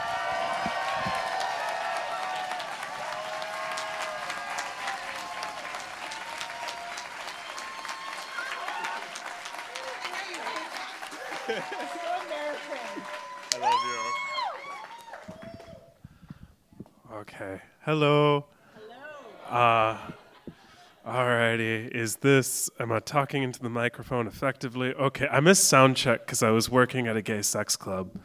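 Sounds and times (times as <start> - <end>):
audience applause: 0.0 - 16.0
laughter: 9.8 - 14.1, 18.8 - 21.6
speech: 17.3 - 18.5, 19.5 - 20.2, 21.1 - 28.2.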